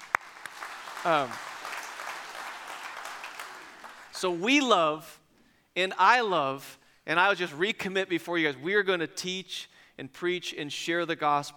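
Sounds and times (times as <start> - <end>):
audience clapping: 0.0 - 4.4
speech: 1.0 - 1.5, 4.2 - 5.2, 5.8 - 11.5.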